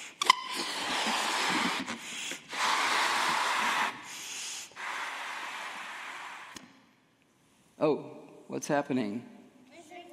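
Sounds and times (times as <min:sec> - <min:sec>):
person blowing up a balloon with air leaking out: 0:00.0 - 0:06.7
speech: 0:07.8 - 0:09.4.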